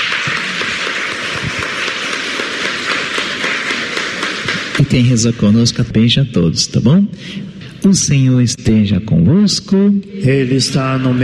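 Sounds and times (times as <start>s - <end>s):
audience applauding: 0.0s - 5.9s
speech: 4.8s - 11.2s.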